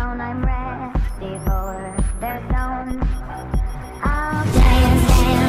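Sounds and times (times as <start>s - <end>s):
dance music ringtone: 0.2s - 5.3s.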